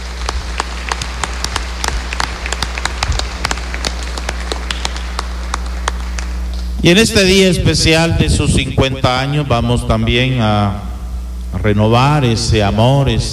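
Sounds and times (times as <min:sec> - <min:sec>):
audience applause: 0:00.0 - 0:06.6
speech: 0:06.8 - 0:10.9, 0:11.6 - 0:13.3.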